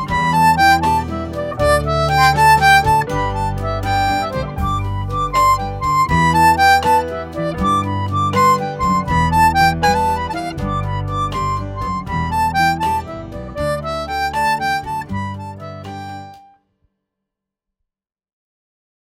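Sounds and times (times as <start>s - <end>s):
harp playing an Irish jig: 0.0s - 16.4s.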